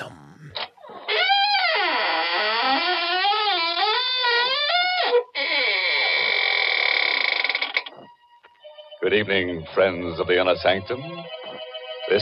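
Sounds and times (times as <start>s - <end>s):
door creaking open: 1.2s - 7.7s
speech: 9.1s - 11.4s.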